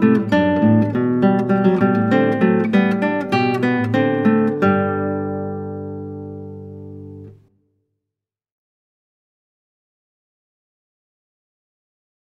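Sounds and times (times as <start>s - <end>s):
classical guitar: 0.0s - 7.6s.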